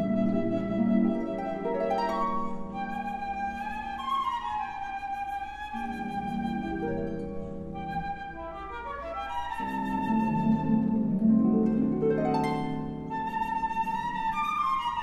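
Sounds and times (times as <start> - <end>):
flute: 0.0 - 15.0
harp: 0.0 - 15.0.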